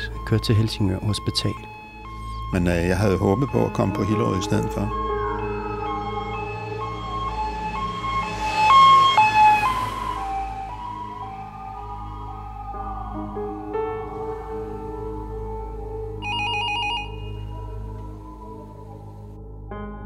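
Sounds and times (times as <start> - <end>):
ambulance siren wailing two-tone: 0.0 - 19.4
speech: 0.3 - 1.8, 2.5 - 5.1
telephone ringing: 16.2 - 17.8.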